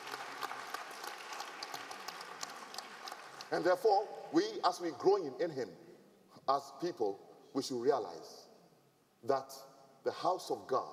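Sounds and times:
audience clapping: 0:00.0 - 0:04.1
speech: 0:03.5 - 0:05.8, 0:06.5 - 0:08.5, 0:09.2 - 0:10.9.

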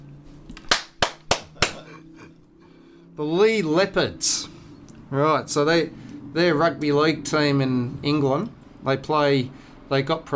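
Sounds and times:
hand clap: 0:00.5 - 0:01.9
speech: 0:03.2 - 0:10.3.

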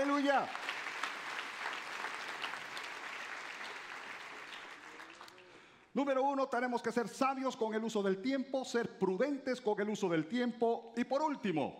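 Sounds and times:
audience applause: 0:00.0 - 0:05.5
speech: 0:00.2 - 0:00.7, 0:06.0 - 0:11.7.

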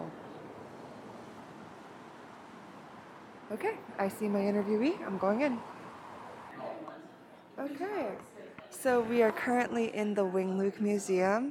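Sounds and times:
rainy city street ambience in Seattle International District: 0:00.0 - 0:08.1
speech: 0:03.5 - 0:05.8, 0:07.6 - 0:11.5.

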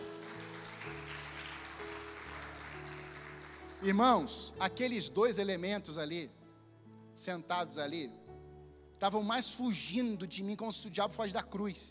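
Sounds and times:
audience applause: 0:00.0 - 0:04.3
speech: 0:03.8 - 0:06.4, 0:07.2 - 0:08.2, 0:09.0 - 0:11.8.

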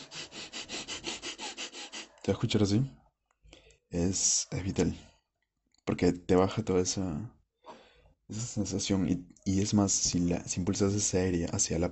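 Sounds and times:
rapid rhythmic breathing demonstration: 0:00.0 - 0:02.2
speech: 0:02.3 - 0:03.0, 0:03.9 - 0:05.1, 0:05.9 - 0:07.4, 0:08.3 - 0:11.9.

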